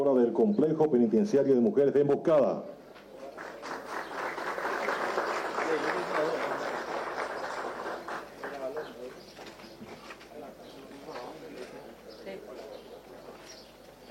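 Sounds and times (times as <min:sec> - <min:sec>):
speech: 0:00.0 - 0:02.8
murmuring voices: 0:03.0 - 0:14.1
crowd clapping: 0:03.2 - 0:09.6.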